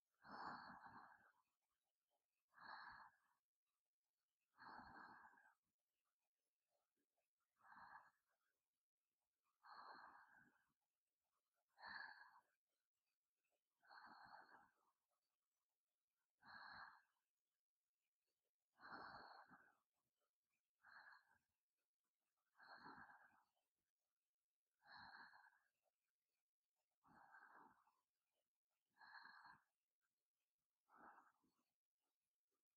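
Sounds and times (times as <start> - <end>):
sleep breathing ASMR: 0.2 - 1.4, 2.5 - 3.4, 4.5 - 5.6, 7.6 - 8.3, 9.6 - 10.7, 11.8 - 12.6, 13.8 - 14.8, 16.4 - 17.2, 18.8 - 19.8, 20.8 - 21.5, 22.5 - 23.6, 24.8 - 25.8, 27.0 - 28.1, 28.9 - 29.8, 30.8 - 31.6.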